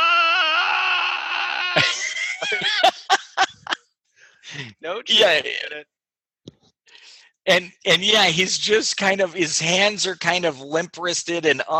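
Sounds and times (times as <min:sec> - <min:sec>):
voice imitating a high operatic scream: 0:00.0 - 0:02.9
laughter: 0:01.7 - 0:03.8, 0:04.5 - 0:05.5
speech: 0:04.8 - 0:06.0, 0:07.5 - 0:11.7.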